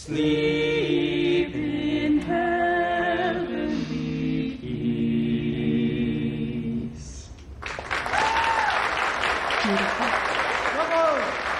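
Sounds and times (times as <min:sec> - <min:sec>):
speech: 0:00.0 - 0:00.5
four people singing a carol: 0:00.0 - 0:07.3
crowd applauding: 0:07.6 - 0:11.5.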